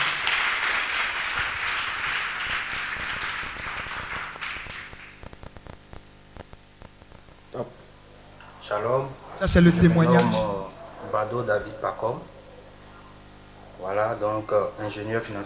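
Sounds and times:
congregation applauding at a church service to acclaim God: 0.0 - 5.2
faint hum: 7.0 - 15.0
speech: 8.7 - 10.6, 11.2 - 12.4, 13.8 - 15.4.

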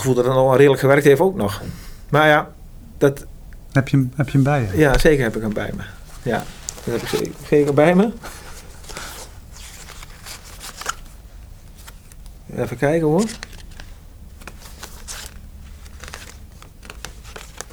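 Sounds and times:
speech: 0.0 - 8.4, 12.5 - 13.5
cards being pulled from a breast pocket rustling: 4.1 - 17.7.

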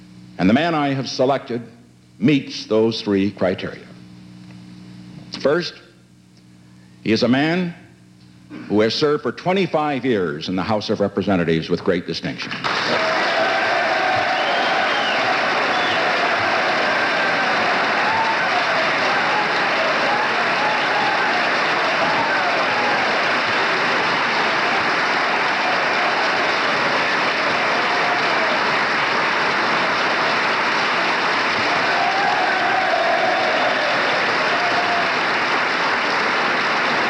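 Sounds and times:
speech: 0.4 - 3.9, 5.4 - 5.8, 7.0 - 7.8, 8.6 - 13.2
Members of Congress standing and applauding minority leader Gerald Ford: 12.6 - 37.0
faint cheering voices: 12.9 - 37.0.

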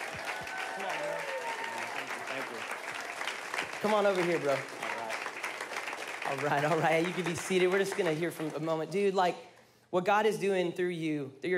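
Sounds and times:
standing audience clapping to welcome a guest to the stage: 0.0 - 9.2
speech: 3.8 - 4.8, 6.3 - 11.5.

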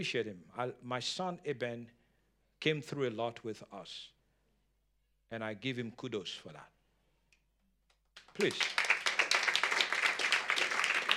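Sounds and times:
speech: 0.0 - 2.0, 2.6 - 4.2, 5.3 - 6.7, 8.4 - 8.9
audience clapping: 8.2 - 11.1.

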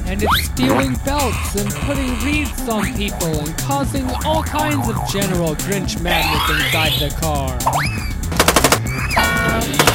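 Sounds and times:
speech: 0.1 - 8.1
loud machine gun fire: 8.3 - 8.9.

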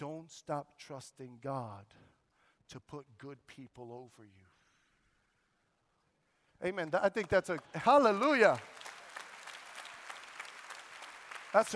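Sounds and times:
speech: 0.0 - 2.1, 2.7 - 4.5, 6.6 - 8.8, 11.5 - 11.7
audience clapping: 6.6 - 11.7.

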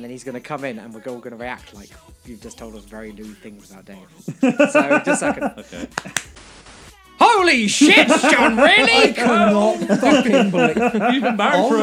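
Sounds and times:
speech: 0.0 - 6.4, 7.3 - 11.8
laughter: 2.6 - 6.3, 7.6 - 11.8
single quick hand clap: 5.2 - 6.4.

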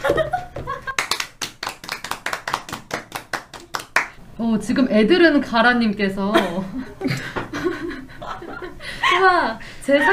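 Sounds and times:
hand clapping: 0.9 - 4.2
speech: 4.4 - 7.2, 9.2 - 10.1
laughter: 6.4 - 10.1.

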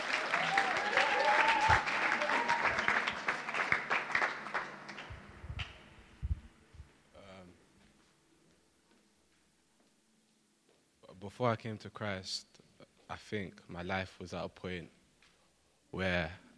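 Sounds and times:
scattered cheers and voices: 0.0 - 3.0
audience applause: 0.0 - 5.8
speech: 11.4 - 15.0, 15.9 - 16.4.

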